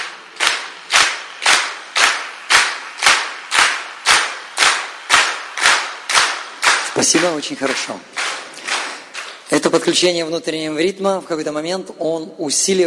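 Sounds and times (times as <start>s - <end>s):
group clapping in unison: 0.0s - 9.9s
speech: 7.0s - 8.4s, 9.7s - 12.8s.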